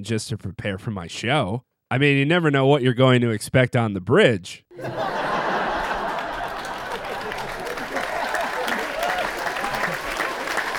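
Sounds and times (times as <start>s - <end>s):
speech: 0.0s - 5.1s
laughter: 4.7s - 10.7s
live studio audience applause: 4.8s - 10.7s.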